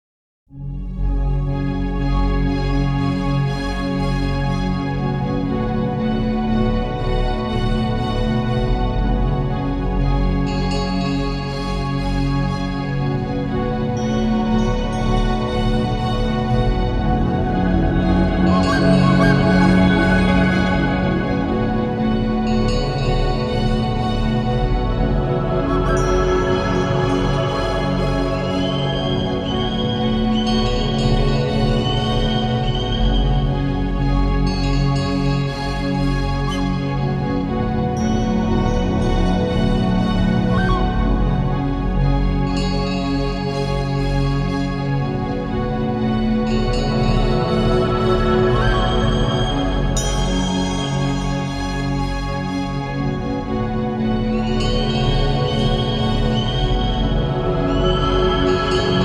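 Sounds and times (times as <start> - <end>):
keyboards: 0.9 - 59.0.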